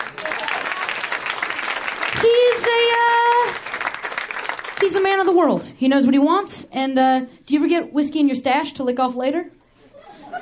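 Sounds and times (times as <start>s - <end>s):
audience applause: 0.0s - 5.3s
speech: 4.9s - 9.6s
laughter: 9.9s - 10.4s.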